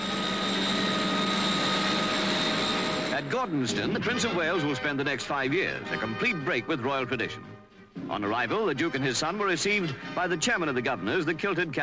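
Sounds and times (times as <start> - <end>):
Heron aircraft engines: 0.0 - 5.9
speech: 3.4 - 11.8.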